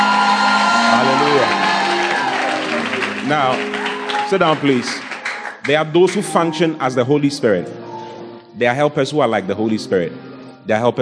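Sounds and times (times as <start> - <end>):
crowd cheering and whooping: 0.0 - 4.4
audience applause: 0.0 - 6.4
speech: 4.3 - 7.9, 8.6 - 11.0.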